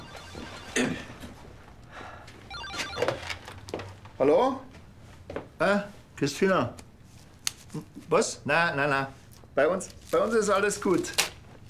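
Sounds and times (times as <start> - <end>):
telephone ringing: 0.0 - 1.4, 2.4 - 3.7
speech: 4.2 - 4.7, 5.6 - 6.8, 7.7 - 11.2.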